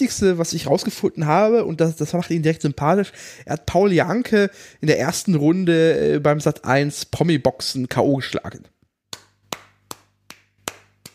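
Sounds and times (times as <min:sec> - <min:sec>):
speech: 0:00.0 - 0:08.8
hand clapping: 0:09.1 - 0:11.1.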